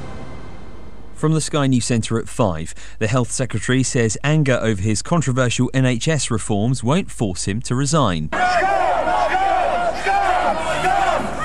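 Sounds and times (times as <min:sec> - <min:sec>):
speech: 0:01.2 - 0:08.7
crowd shouting and jeering: 0:08.3 - 0:11.4.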